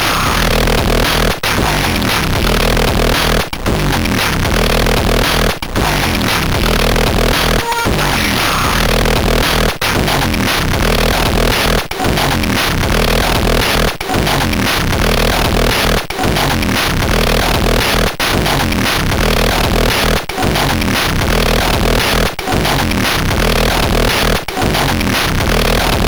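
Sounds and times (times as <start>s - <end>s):
remix on a MOS6581R2 SID chip: 0.0s - 26.0s.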